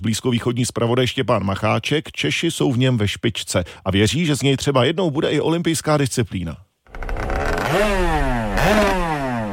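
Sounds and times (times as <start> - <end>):
speech: 0.0 - 6.7, 7.7 - 9.0
motorized surfboard engine revving: 6.9 - 9.5.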